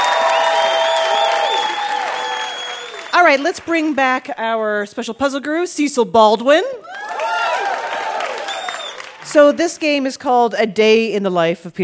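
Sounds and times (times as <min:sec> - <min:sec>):
audience applause: 0:00.0 - 0:03.8, 0:06.9 - 0:09.7
speech: 0:03.3 - 0:07.0, 0:09.3 - 0:11.8.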